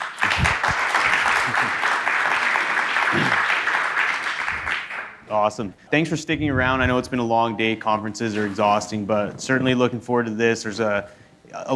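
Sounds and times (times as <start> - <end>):
audience applause: 0.0 - 5.2
speech: 5.3 - 11.7.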